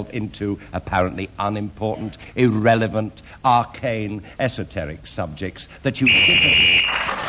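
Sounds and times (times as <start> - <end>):
speech: 0.0 - 6.7
whistle blown to end round: 6.0 - 7.1.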